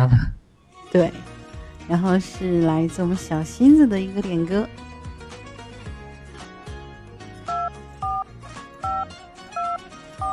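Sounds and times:
music: 0.0 - 10.3
speech: 1.0 - 1.3, 1.9 - 4.9
touch-tone beeps of a telephone number being dialed: 7.5 - 10.3.

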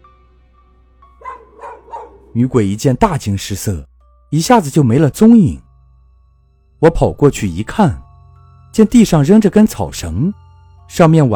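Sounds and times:
dog barking: 1.2 - 2.3
speech: 2.4 - 5.7, 6.8 - 8.0, 8.7 - 11.3.

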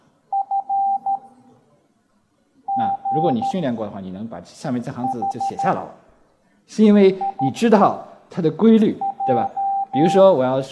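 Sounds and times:
Morse code beeps: 2.7 - 3.6, 5.0 - 5.8, 7.2 - 7.6, 9.0 - 10.2
speech: 3.2 - 6.0, 6.7 - 10.7.

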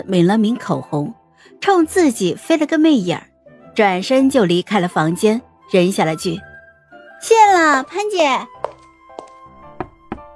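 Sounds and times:
speech: 0.0 - 6.5, 7.2 - 8.5
knocking on a hotel room door: 9.7 - 10.3.

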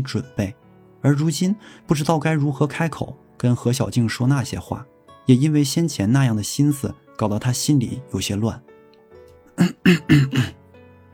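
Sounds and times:
speech: 0.0 - 8.8, 9.6 - 10.6
throat clearing: 9.6 - 10.6.

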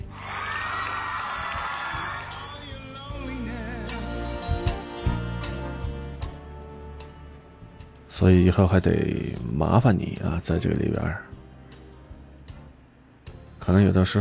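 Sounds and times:
crowd cheering and whooping: 0.0 - 3.0
scattered hand claps: 0.3 - 2.7
speech: 8.2 - 11.3, 13.7 - 14.1.

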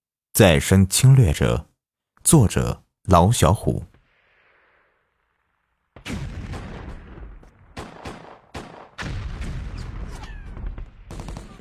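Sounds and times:
speech: 0.4 - 3.9
artillery booms: 4.0 - 11.5
gunfire: 5.9 - 11.5.

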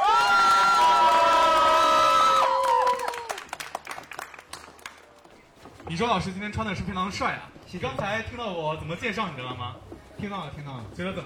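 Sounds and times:
audience applause and cheering: 0.0 - 5.4
speech: 5.9 - 11.2.

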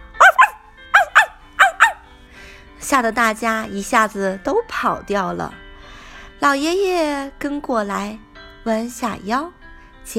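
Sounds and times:
hunting dog barking: 0.1 - 2.1
speech: 2.9 - 5.6, 6.4 - 10.1.

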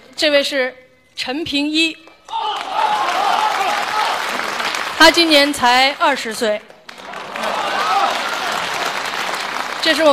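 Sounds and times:
speech: 0.2 - 2.4, 5.0 - 6.7, 9.8 - 10.1
audience applause: 2.3 - 6.1, 6.8 - 10.1.

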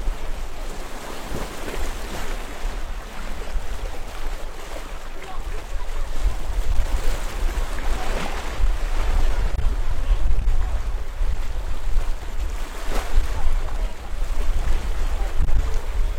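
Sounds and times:
waves washing over rocks along a seawall in Shantou: 0.0 - 16.1
wind rumble: 5.7 - 16.1.

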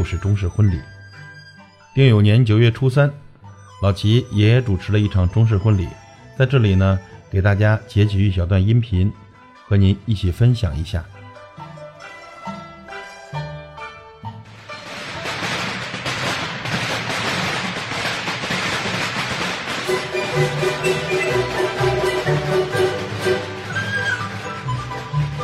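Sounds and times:
speech: 0.0 - 1.2, 2.0 - 3.2, 3.8 - 11.2
festive music with tonal melody: 0.0 - 25.4
firecrackers set off for a wedding: 14.5 - 25.4.

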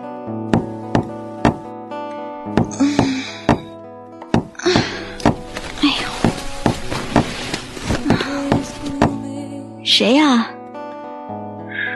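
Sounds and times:
dull rhythmic knocking on a door: 0.5 - 1.7, 2.5 - 5.4, 6.1 - 7.4, 8.1 - 9.2
speech: 10.0 - 10.5.

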